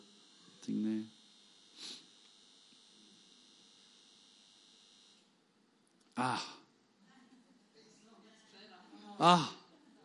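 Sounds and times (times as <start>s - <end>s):
electric light buzzing: 0.0s - 7.0s
speech: 0.7s - 1.2s, 6.2s - 6.6s, 9.2s - 9.6s.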